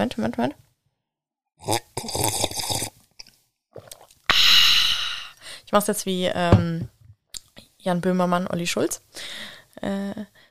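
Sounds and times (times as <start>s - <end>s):
speech: 0.0s - 0.6s, 1.6s - 2.6s, 5.7s - 6.9s, 7.8s - 10.4s
tea being sipped with wet slurping sips: 1.6s - 3.0s, 3.8s - 5.4s
loud breathy rush of air: 4.3s - 5.6s.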